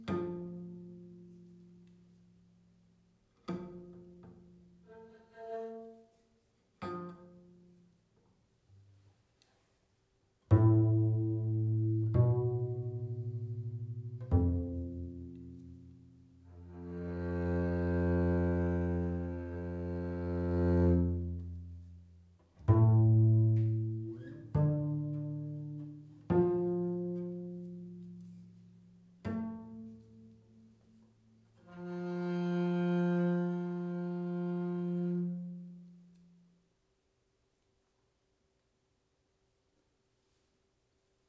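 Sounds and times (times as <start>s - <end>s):
prepared double bass: 10.5s - 36.3s.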